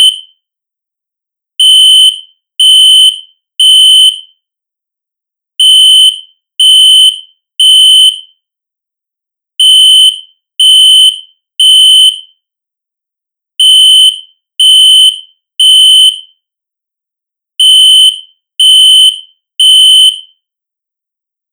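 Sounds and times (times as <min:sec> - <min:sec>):
synthesized fire alarm: 0:01.6 - 0:04.4, 0:05.6 - 0:08.4, 0:09.6 - 0:12.4, 0:13.6 - 0:16.4, 0:17.6 - 0:20.4.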